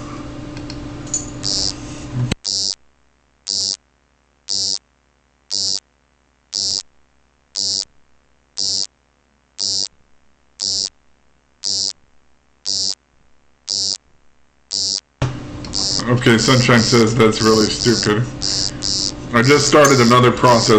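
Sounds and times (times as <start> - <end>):
frog croak made from photocopier sounds: 1.4 - 1.8, 2.4 - 2.8, 3.5 - 3.8, 4.5 - 4.8, 5.5 - 5.8, 6.6 - 6.9, 7.6 - 7.9, 8.6 - 8.9, 9.6 - 9.9, 10.6 - 10.9, 11.6 - 12.0, 12.6 - 13.0, 13.7 - 14.0, 14.7 - 15.0, 15.8 - 16.1, 17.4 - 20.2
speech: 16.1 - 18.5, 19.4 - 20.7.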